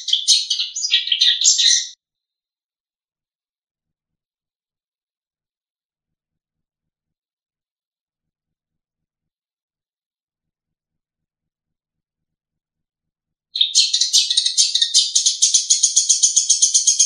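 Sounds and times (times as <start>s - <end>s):
long-tailed shrike trilling: 0.0s - 2.0s, 13.6s - 17.0s.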